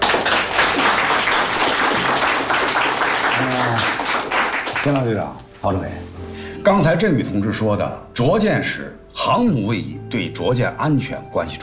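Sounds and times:
group applauding people praised as heroes: 0.0s - 5.4s
speech: 4.8s - 11.6s.

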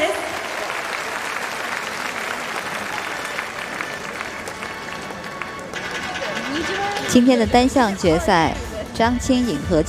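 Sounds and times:
audience applause in arena: 0.2s - 6.5s
speech: 7.1s - 9.8s.

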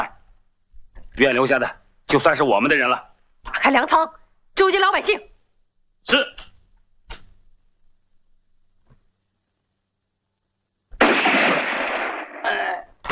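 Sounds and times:
speech: 1.2s - 3.1s, 3.7s - 5.3s, 6.0s - 6.5s
gunshots in a dramatic scene: 11.0s - 13.0s.

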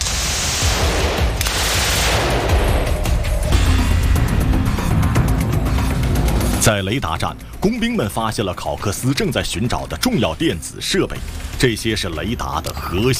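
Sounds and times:
booming impacts in a wartime coastal battle: 0.0s - 6.6s
MG42 machine gun fire from a German cliffside position: 0.3s - 3.0s
speech: 6.6s - 13.1s.

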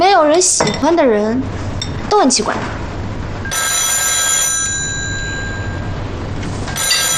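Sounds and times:
speech: 0.2s - 2.8s
telephone ringing: 3.5s - 6.1s, 6.7s - 7.1s.

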